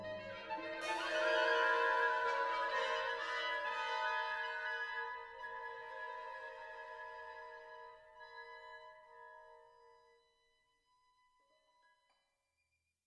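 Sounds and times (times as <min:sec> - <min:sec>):
violin and orchestra: 0:00.0 - 0:07.3.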